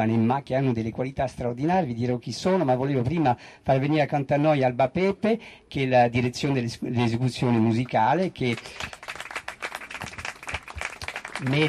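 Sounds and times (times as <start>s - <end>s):
speech: 0.0s - 9.0s, 11.4s - 11.6s
audience applause for a musical director: 8.5s - 11.6s.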